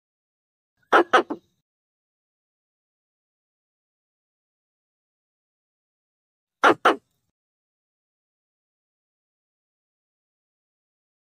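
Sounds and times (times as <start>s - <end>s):
Pallas's squirrel rasping chatter bursts: 0.8s - 1.5s, 6.6s - 7.0s.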